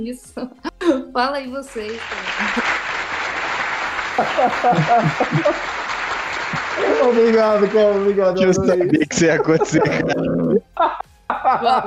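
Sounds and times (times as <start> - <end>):
speech: 0.0 - 2.8, 4.2 - 5.8, 6.8 - 11.8
crowd applause: 1.8 - 10.2
laughter: 2.0 - 2.9, 4.0 - 11.8
loud voices cheering or calling out: 2.0 - 11.0.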